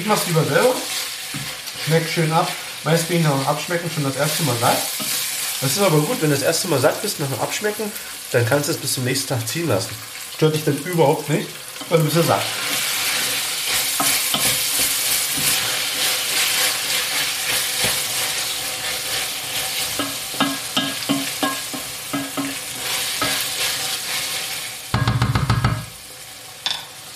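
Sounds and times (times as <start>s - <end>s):
speech: 0.0s - 12.8s
meat, onions, lard, tomato paste and spice powder sizzling in a pan: 0.0s - 27.1s
stirring scrapes and knocks in a pan: 11.8s - 24.4s.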